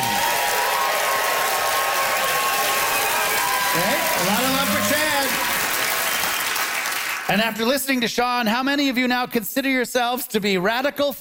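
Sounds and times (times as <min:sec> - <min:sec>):
audience clapping to vote for a contestant: 0:00.0 - 0:08.1
speech: 0:07.3 - 0:11.1.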